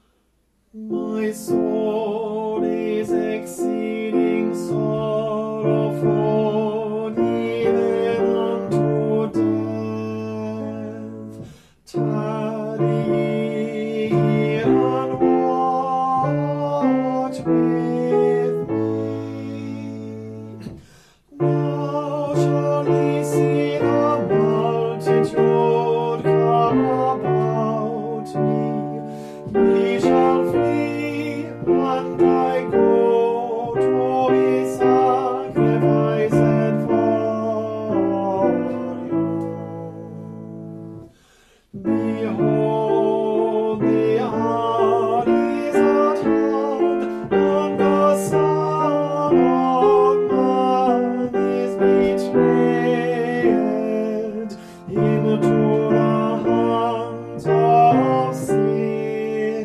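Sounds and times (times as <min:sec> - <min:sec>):
tenor singing: 0:00.7 - 0:59.6.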